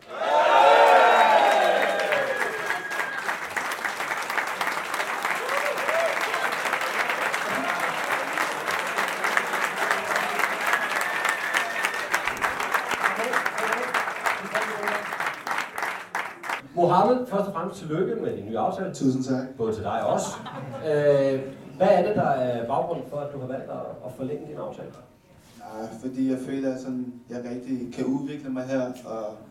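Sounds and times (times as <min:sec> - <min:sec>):
audience applause at a Danish football club event: 0:00.0 - 0:16.6
speech: 0:17.3 - 0:25.1, 0:25.8 - 0:29.4
laughter: 0:20.1 - 0:21.5.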